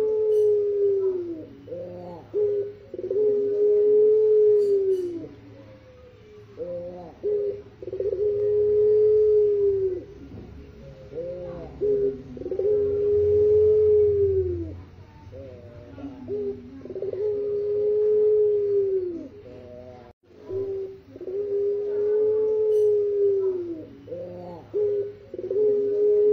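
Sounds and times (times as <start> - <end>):
Barbary dove cooing: 0.0 - 26.3.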